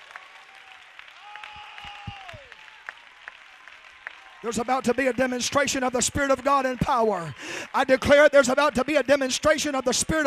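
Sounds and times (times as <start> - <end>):
audience clapping: 0.0 - 10.2
speech: 4.4 - 10.2.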